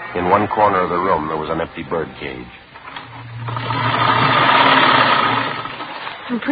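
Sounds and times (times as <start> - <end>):
speech: 0.1 - 2.6, 6.3 - 6.5
sewing machine stitching fabric: 2.8 - 6.5.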